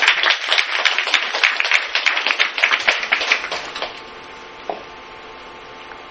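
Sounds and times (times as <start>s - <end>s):
audience applause: 0.0s - 4.0s.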